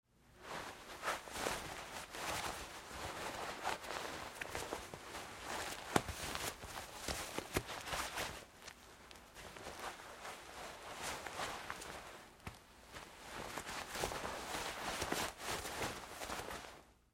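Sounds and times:
nylon shorts rustling during fight moves struggling: 0.3 - 17.1.

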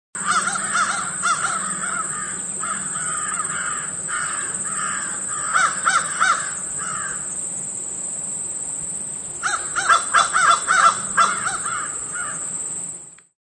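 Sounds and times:
multiple crows calling and cawing: 0.2 - 7.3, 9.4 - 12.5.

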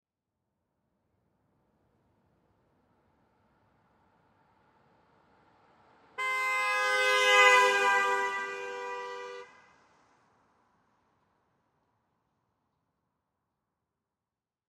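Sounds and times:
2007 Pontiac G6 driving by right to left at 35 mph: 5.9 - 10.2
Pontiac G6 car horn: 6.2 - 9.6.

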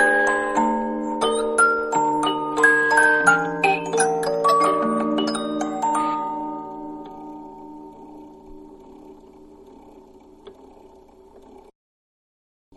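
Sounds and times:
toy music box tune: 0.0 - 9.8.

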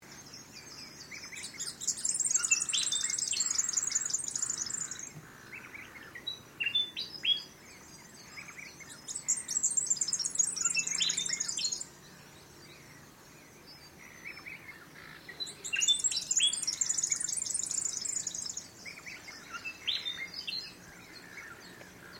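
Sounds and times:
bird calls in mangroves: 0.0 - 22.1.

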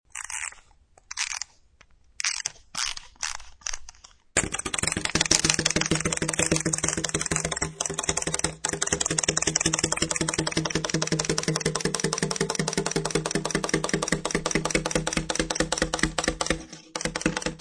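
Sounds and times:
toy rabbit being wound up: 0.1 - 1.5
wind-up toy rabbit hopping: 4.4 - 17.6.

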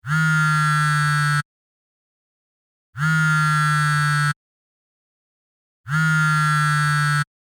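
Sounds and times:
cell phone vibrating in hand: 0.0 - 1.5, 3.0 - 4.4, 5.9 - 7.3.

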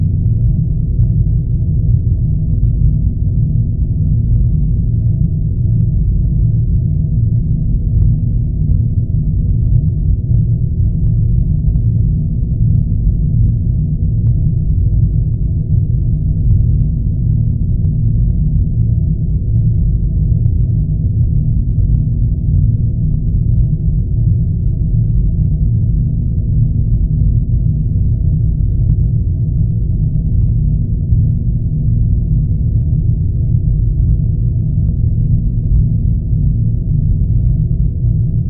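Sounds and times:
modulated spaceship hum: 0.0 - 38.4.

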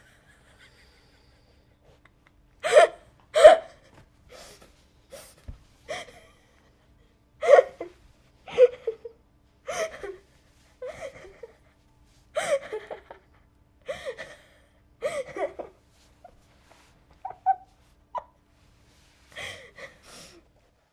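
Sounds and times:
young girl with suppressed hysterical laughter: 0.0 - 4.6, 7.4 - 10.2, 10.8 - 11.7, 12.4 - 15.8, 17.2 - 18.4.

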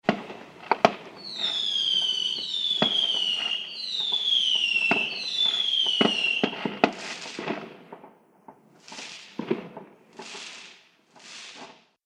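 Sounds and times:
fireworks bangs: 0.0 - 12.0.

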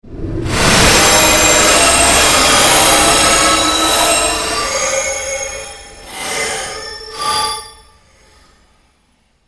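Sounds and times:
surging sound effect made by manipulating other sounds: 0.0 - 8.4.

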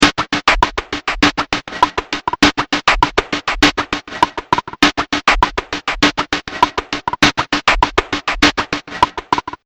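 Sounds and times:
dirty drum beat loop: 0.0 - 9.6.

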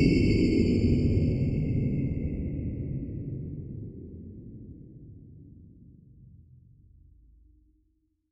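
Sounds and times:
evil alien presence moving, sci-fi sound effect: 0.0 - 3.4.

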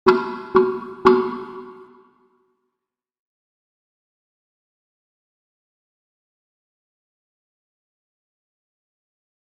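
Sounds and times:
slow metal impact hits: 0.0 - 2.0.

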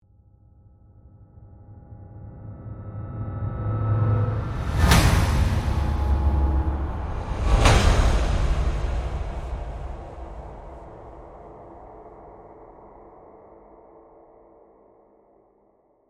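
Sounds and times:
dark horror metal hits: 2.1 - 12.4.

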